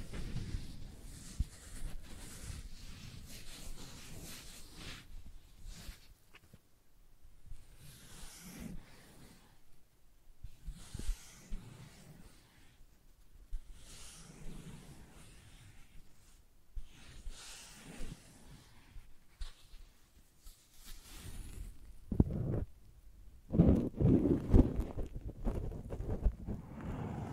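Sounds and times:
sensitive tracing brushing and rubbing strokes: 0:00.0 - 0:06.5, 0:07.4 - 0:09.8, 0:10.4 - 0:22.8, 0:23.5 - 0:27.3.

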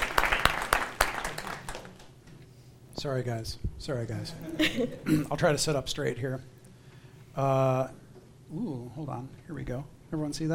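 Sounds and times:
audience applause: 0:00.0 - 0:02.2
speech: 0:03.0 - 0:06.6, 0:07.4 - 0:10.5.

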